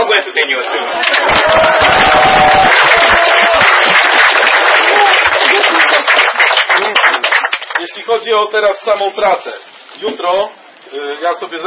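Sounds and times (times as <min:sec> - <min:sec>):
speech: 0:00.2 - 0:00.8, 0:08.2 - 0:11.6
audience applause: 0:00.6 - 0:08.0
faint whistles and cheers: 0:00.9 - 0:04.0.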